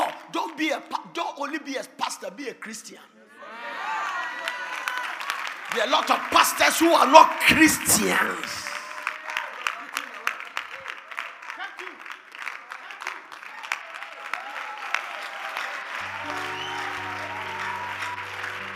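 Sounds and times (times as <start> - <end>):
speech: 0.3 - 3.6, 5.7 - 8.7
audience clapping: 4.0 - 18.7.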